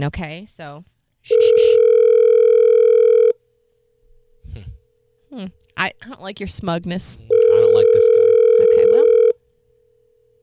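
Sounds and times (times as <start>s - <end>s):
speech: 0.0s - 1.9s, 4.5s - 8.7s
telephone dial tone while calling someone: 1.4s - 3.4s, 7.3s - 9.4s.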